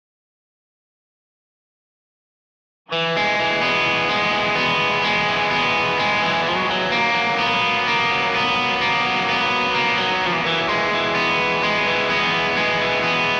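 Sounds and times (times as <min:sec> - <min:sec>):
guitar in C: 0:02.9 - 0:13.3.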